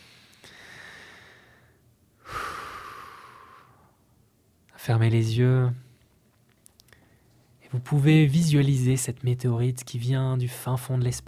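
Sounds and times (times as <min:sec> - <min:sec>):
slow deep breathing during a guided relaxation exercise: 0:00.0 - 0:04.0
speech: 0:04.8 - 0:05.8, 0:07.7 - 0:11.2.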